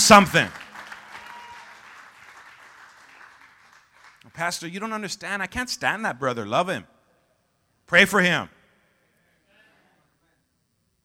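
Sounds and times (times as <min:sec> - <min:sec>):
audience clapping: 0:00.0 - 0:05.0
speech: 0:00.1 - 0:00.6, 0:04.4 - 0:06.9, 0:07.9 - 0:08.6.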